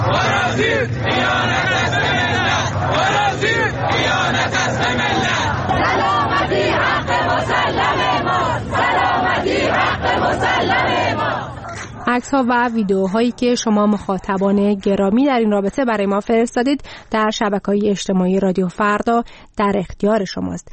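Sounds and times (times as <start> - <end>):
protest crowd chanting: 0.0 - 14.4
speech: 12.2 - 20.7.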